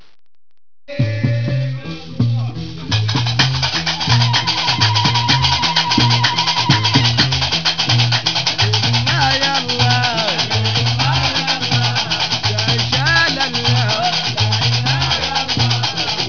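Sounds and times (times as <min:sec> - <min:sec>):
gnawa music: 0:00.9 - 0:16.2.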